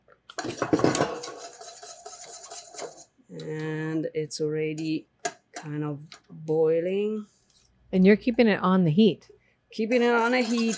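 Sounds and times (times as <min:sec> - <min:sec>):
whisk scraping a metal pot, whisking thickening cornstarch custard: 0:00.3 - 0:03.2, 0:09.8 - 0:10.7
speech: 0:03.4 - 0:10.7.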